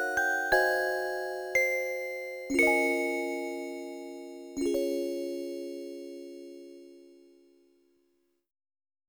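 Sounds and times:
music box: 0.0 - 7.2.

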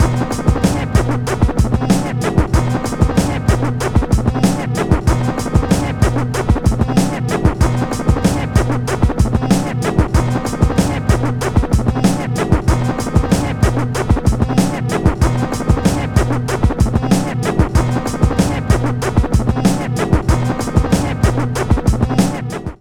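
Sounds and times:
menu music loop: 0.0 - 22.3.

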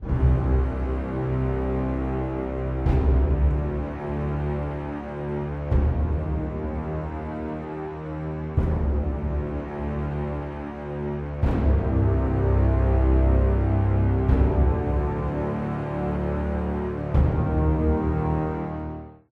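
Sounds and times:
dark epic music: 0.0 - 19.2.

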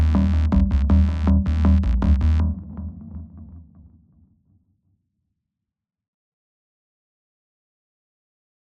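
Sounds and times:
tension bass music: 0.0 - 3.6.

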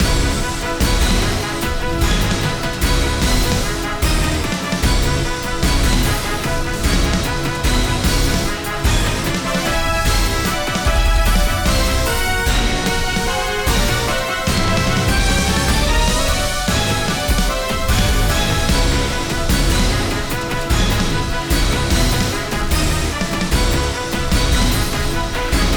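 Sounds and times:
hard drag: 0.0 - 25.7.

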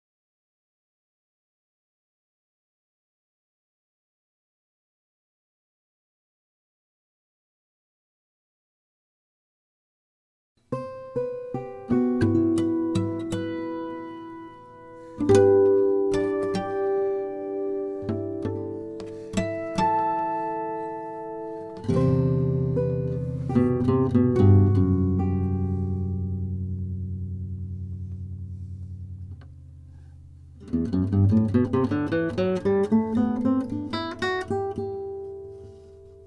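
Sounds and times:
campfire guitar in A: 10.6 - 36.2.

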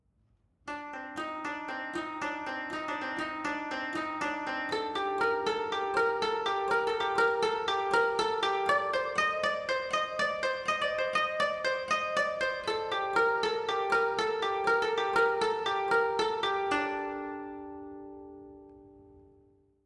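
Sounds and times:
savannah-themed music: 0.7 - 19.8.

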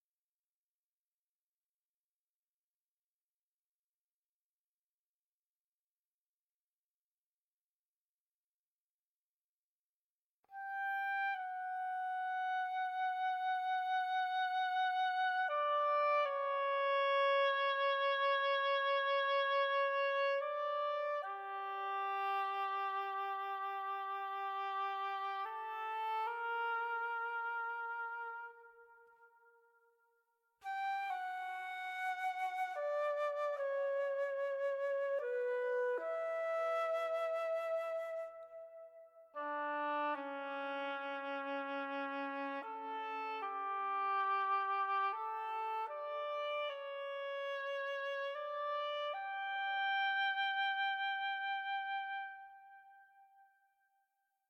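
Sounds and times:
woodwinds stem: 10.6 - 29.6, 30.6 - 53.3.

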